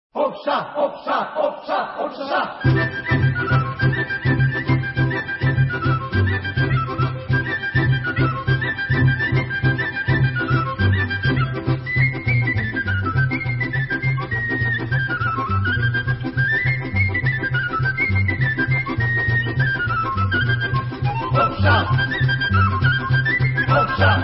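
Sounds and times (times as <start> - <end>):
Serbian kolo folk dance music: 0.4 - 24.2.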